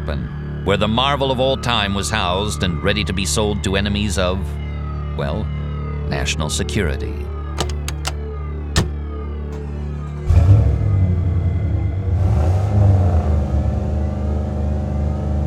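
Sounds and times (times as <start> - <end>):
speech: 0.1 - 4.6, 5.2 - 7.7
sharp clicks: 7.6 - 8.2
SUV engine rumbling across a salt flat: 7.6 - 15.4.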